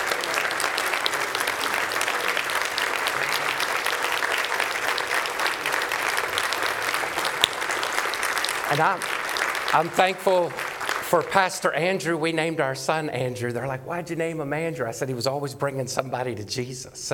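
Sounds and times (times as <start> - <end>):
prolonged audience applause: 0.0 - 13.0
speech: 8.7 - 17.1.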